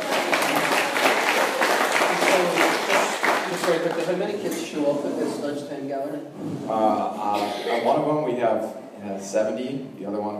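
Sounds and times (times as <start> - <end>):
audience clapping: 0.0 - 4.7
speech: 3.7 - 10.3.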